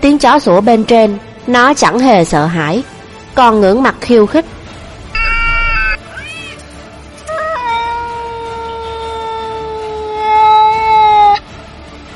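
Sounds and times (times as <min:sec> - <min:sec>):
speech: 0:00.0 - 0:04.6
cat meowing: 0:05.2 - 0:11.4.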